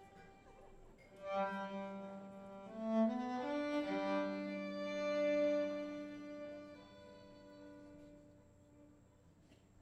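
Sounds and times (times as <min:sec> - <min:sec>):
violin intro: 0:01.2 - 0:08.9.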